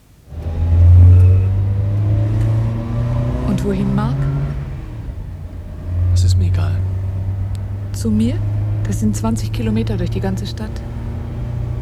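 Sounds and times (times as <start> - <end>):
car engine revving as car drives off: 0.0 - 11.7
speech: 8.0 - 10.9.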